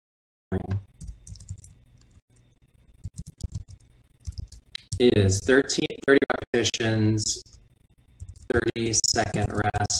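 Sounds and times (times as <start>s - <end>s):
speech: 0.5s - 0.8s, 5.0s - 7.6s, 8.5s - 9.9s
typing on a computer keyboard: 1.0s - 1.8s, 3.0s - 5.0s.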